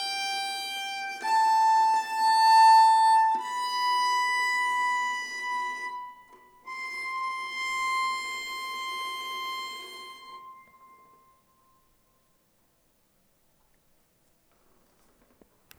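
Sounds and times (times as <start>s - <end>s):
nyckelharpa sound sample: 0.0s - 11.5s.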